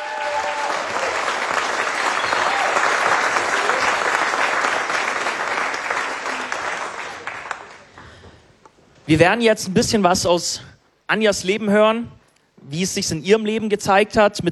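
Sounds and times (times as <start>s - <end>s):
audience applause: 0.0s - 8.0s
speech: 9.1s - 14.5s.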